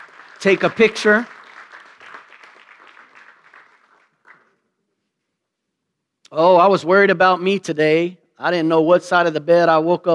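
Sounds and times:
audience applause: 0.0s - 4.5s
speech: 0.4s - 1.4s, 6.4s - 10.1s.

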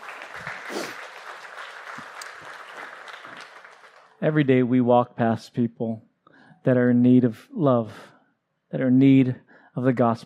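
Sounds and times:
audience clapping: 0.0s - 4.3s
speech: 0.7s - 1.0s, 4.2s - 8.1s, 8.7s - 10.2s.

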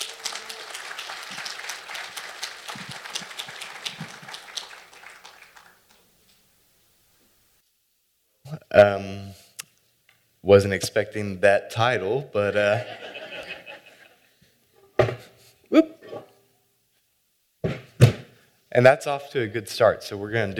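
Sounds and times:
audience applause: 0.0s - 6.0s
speech: 8.8s - 9.2s, 10.5s - 13.0s, 18.8s - 20.5s
laughter: 12.6s - 14.3s.

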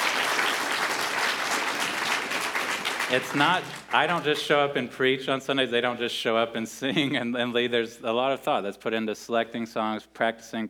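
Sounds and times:
audience applause: 0.0s - 4.4s
speech: 3.1s - 10.6s.

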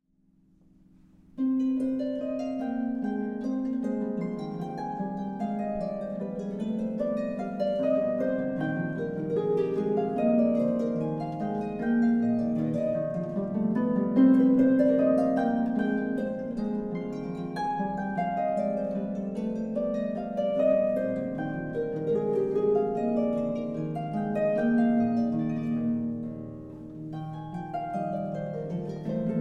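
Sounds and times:
classical suite movement: 0.9s - 29.4s.

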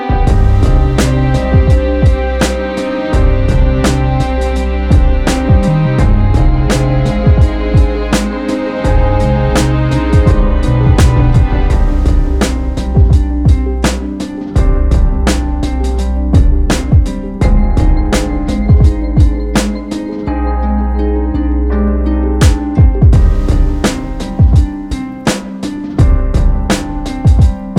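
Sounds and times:
Afrobeat music: 0.1s - 27.7s.

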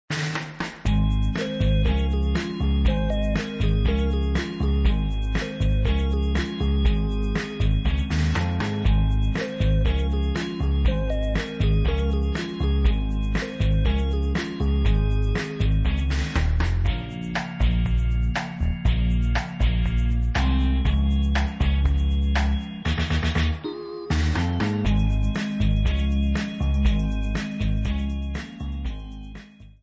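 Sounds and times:
groove music: 0.1s - 29.8s.

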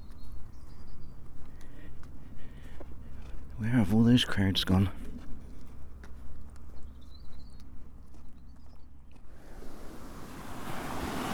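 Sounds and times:
speech: 3.6s - 5.0s
waves washing onto a sandy beach: 9.3s - 11.3s.

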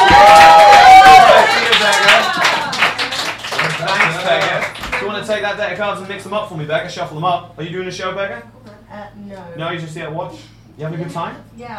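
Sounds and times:
audience clapping for volunteer: 0.0s - 5.3s
speech: 5.5s - 8.6s, 9.2s - 11.7s.

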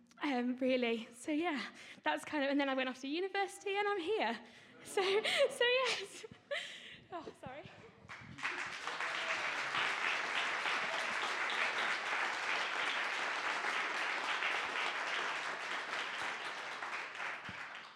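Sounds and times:
speech: 0.2s - 8.2s
audience applause: 8.1s - 17.9s.

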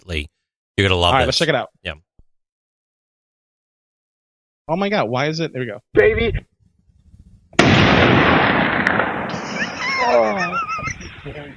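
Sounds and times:
speech: 0.0s - 2.1s, 4.7s - 6.5s
big gun being fired: 7.6s - 10.2s
laughter: 9.3s - 11.5s.

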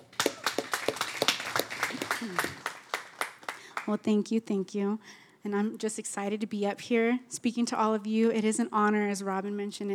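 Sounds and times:
audience applause: 0.0s - 3.9s
speech: 2.2s - 2.5s, 3.9s - 9.9s.

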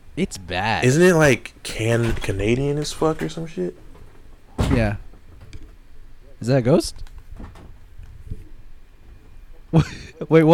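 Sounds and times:
speech: 0.2s - 3.8s, 4.6s - 5.0s, 6.4s - 7.5s, 9.7s - 10.5s
door closing blown by wind outside: 1.8s - 5.8s, 7.3s - 7.8s.

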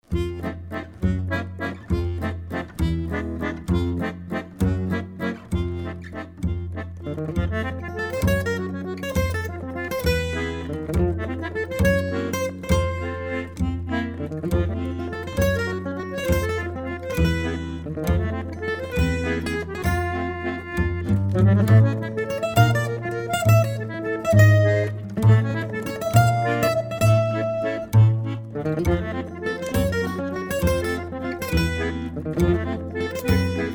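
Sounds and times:
waltz music: 0.1s - 33.7s.

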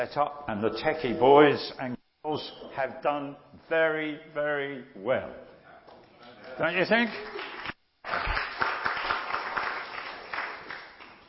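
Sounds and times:
speech: 0.0s - 5.4s, 6.6s - 7.4s
audience clapping: 6.2s - 11.2s.

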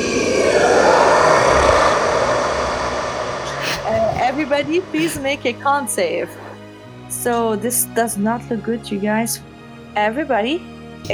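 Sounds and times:
person imitating deep monster scream: 0.0s - 5.4s
speech: 4.6s - 6.4s, 7.2s - 11.1s.

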